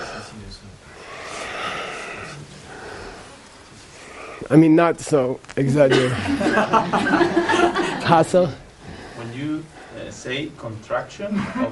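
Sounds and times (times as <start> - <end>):
deep inhalation during a breathing exercise demonstration: 0.0 - 4.5, 8.6 - 10.3
speech: 4.5 - 8.6, 9.6 - 11.7
laughter: 5.9 - 8.6, 11.2 - 11.7.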